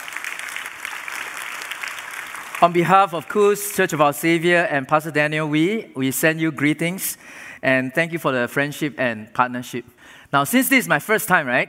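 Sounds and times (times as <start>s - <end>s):
audience applause: 0.0s - 3.0s
speech: 2.6s - 11.6s.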